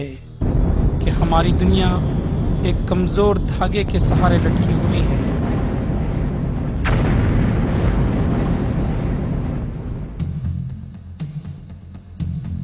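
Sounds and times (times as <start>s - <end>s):
volcanic eruption rumbling roar: 0.4s - 10.5s
booming bursts: 0.4s - 11.0s
speech: 1.3s - 5.2s
sharp crack: 2.6s - 10.4s.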